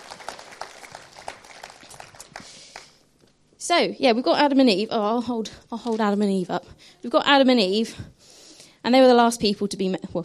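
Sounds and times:
audience applause: 0.0 - 2.9
speech: 3.7 - 8.1, 8.8 - 10.2.

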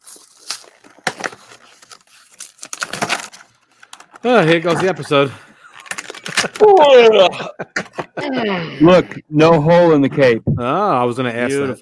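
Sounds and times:
toy packaging being torn open: 0.0 - 4.6, 5.7 - 6.8
speech: 4.2 - 5.5, 6.4 - 11.8
laughter: 4.2 - 9.2.

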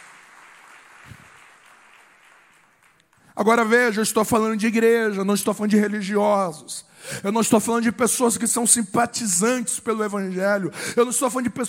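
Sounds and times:
audience applauding: 0.0 - 3.3
speech: 3.4 - 11.6.

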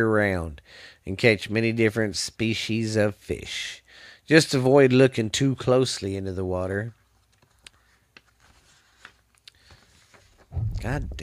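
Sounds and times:
speech: 0.0 - 7.0, 10.5 - 11.2
paper pages being separated and turned: 7.1 - 10.5.

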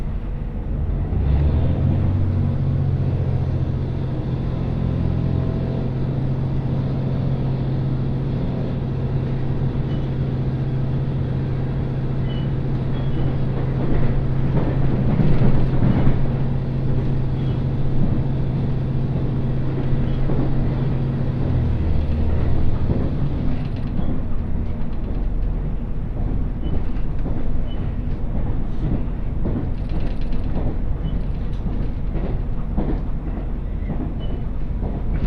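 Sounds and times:
one-car GV-E400 hybrid train running on the Tsugaru Line: 0.0 - 35.2
scattered rattles and clicks: 12.1 - 18.4, 19.2 - 35.2.

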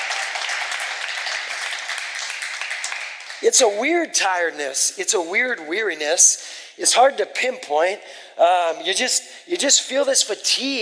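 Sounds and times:
crowd clapping: 0.0 - 3.8
speech: 3.4 - 10.8.

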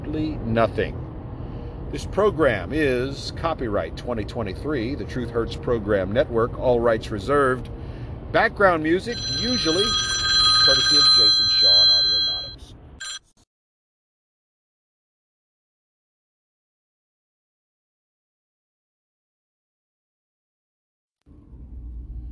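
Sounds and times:
speech: 0.1 - 1.0, 1.9 - 11.8
phone ringing: 9.1 - 13.3.

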